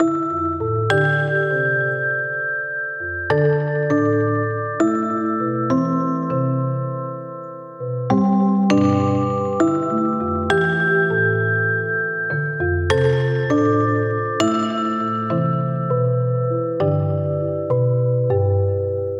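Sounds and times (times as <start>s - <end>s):
mallet loop at 100 BPM in A minor: 0.0s - 19.1s.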